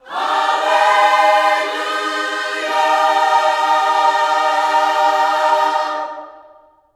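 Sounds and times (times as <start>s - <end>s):
gospel vocals singing hallelu: 0.0s - 6.8s.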